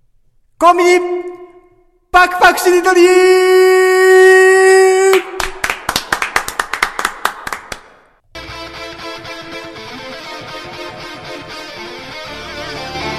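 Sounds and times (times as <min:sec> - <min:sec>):
speech: 0:00.6 - 0:01.2, 0:02.1 - 0:04.2
applause sound effect: 0:05.1 - 0:08.2.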